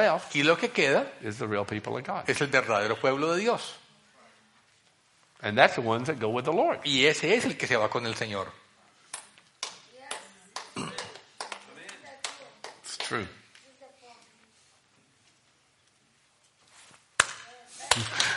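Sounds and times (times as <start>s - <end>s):
speech: 0.0s - 3.8s, 5.4s - 8.6s, 13.1s - 13.4s, 18.0s - 18.2s
audience clapping: 9.6s - 13.2s, 17.9s - 18.3s.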